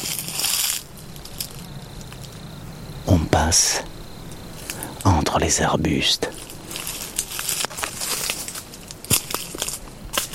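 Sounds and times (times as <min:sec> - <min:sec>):
dry dead leaves crunching underfoot: 0:00.0 - 0:02.5, 0:06.2 - 0:10.3
speech: 0:03.4 - 0:03.9, 0:05.1 - 0:06.4.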